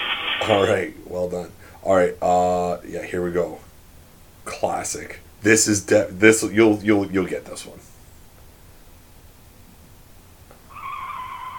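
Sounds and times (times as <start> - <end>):
speech: 0.4 - 3.7, 4.5 - 7.9
car tires squealing: 10.7 - 11.5.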